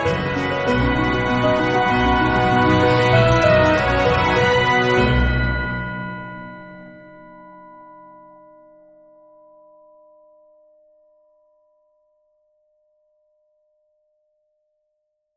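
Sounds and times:
instrumental music: 0:00.0 - 0:07.5.

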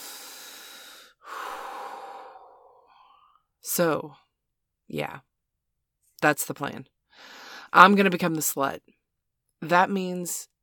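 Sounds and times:
deep breathing in and out: 0:00.0 - 0:03.4
speech: 0:03.7 - 0:04.2, 0:04.9 - 0:05.3, 0:06.2 - 0:09.0, 0:09.6 - 0:10.5.

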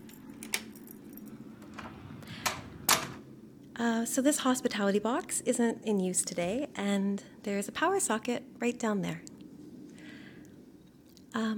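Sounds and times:
keys jingling before unlocking a door: 0:00.0 - 0:02.6
low hum: 0:00.0 - 0:05.3
speech: 0:03.8 - 0:09.3, 0:11.4 - 0:11.5.

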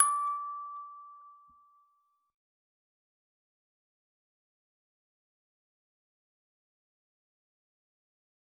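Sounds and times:
music box note: 0:00.0 - 0:01.8.

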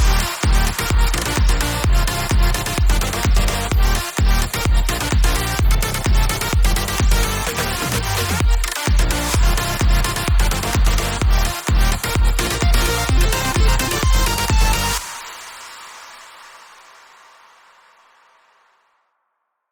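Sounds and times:
future bass song: 0:00.0 - 0:15.2.

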